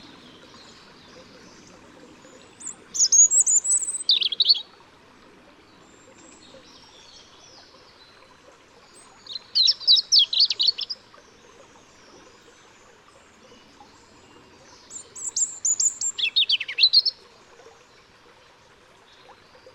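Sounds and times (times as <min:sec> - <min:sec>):
European robin singing: 0:02.3 - 0:04.7, 0:09.0 - 0:11.0, 0:14.8 - 0:17.2.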